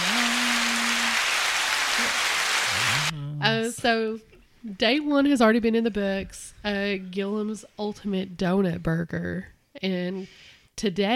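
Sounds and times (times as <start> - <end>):
applause: 0.0 - 3.1
speech: 3.4 - 11.1.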